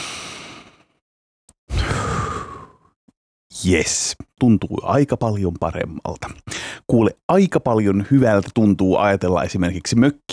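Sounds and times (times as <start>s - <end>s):
deep breath in and out: 0.0s - 0.9s, 1.7s - 3.0s, 6.5s - 6.9s
speech: 3.6s - 10.3s.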